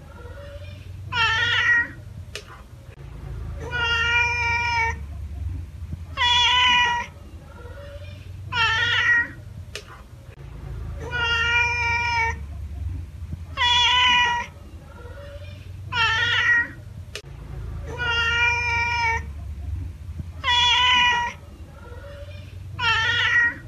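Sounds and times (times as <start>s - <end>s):
domestic cat giving drawn-out meows: 0.1s - 2.0s, 3.6s - 5.0s, 6.1s - 9.4s, 11.0s - 12.4s, 13.5s - 16.8s, 17.9s - 19.3s, 20.4s - 23.6s.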